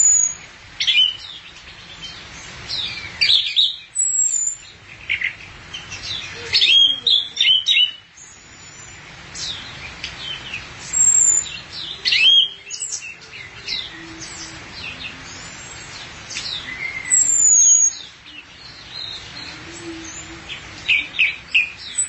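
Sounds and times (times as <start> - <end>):
background hiss: 0.0 - 22.0
thrush singing: 10.2 - 22.0.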